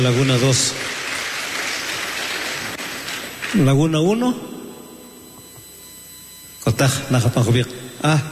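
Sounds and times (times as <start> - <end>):
speech: 0.0 - 1.0, 3.5 - 4.5, 6.6 - 8.3
crowd applauding: 0.0 - 3.7.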